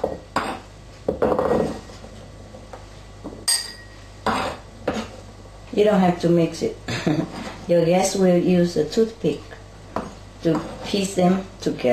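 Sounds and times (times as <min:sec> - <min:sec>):
dishes and utensils clinking while arranging salad in a bowl: 0:03.4 - 0:05.1
speech: 0:05.8 - 0:09.5, 0:10.4 - 0:11.9.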